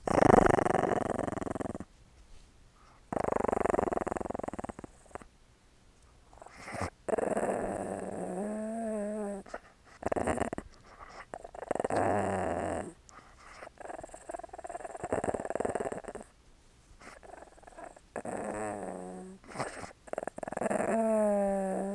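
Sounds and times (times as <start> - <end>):
dog growling: 0.0 - 1.9, 3.1 - 5.3, 6.4 - 16.3, 17.0 - 21.9.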